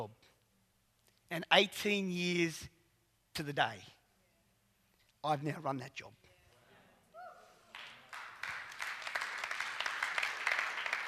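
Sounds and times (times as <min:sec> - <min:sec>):
speech: 0:01.3 - 0:02.8, 0:03.4 - 0:04.0, 0:05.2 - 0:06.2
audience clapping: 0:07.7 - 0:11.0.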